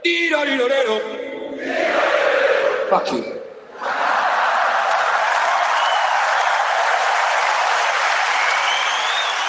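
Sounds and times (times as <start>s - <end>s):
speech: 0.1s - 2.2s, 2.9s - 3.3s
huge stadium crowd cheering and clapping: 3.8s - 9.4s
whistles from the crowd: 5.7s - 6.4s, 8.3s - 9.4s.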